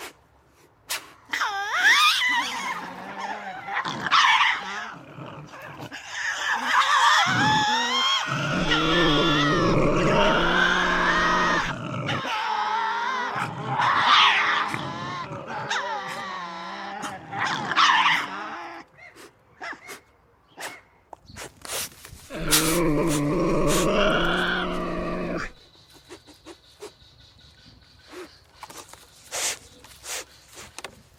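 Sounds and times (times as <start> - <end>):
Tasmanian devil vocalizing: 1.4 - 18.9, 22.3 - 25.6.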